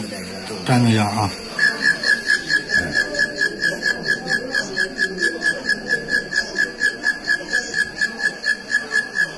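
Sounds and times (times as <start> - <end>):
katydid chirping: 0.0 - 9.3
speech: 0.7 - 1.5.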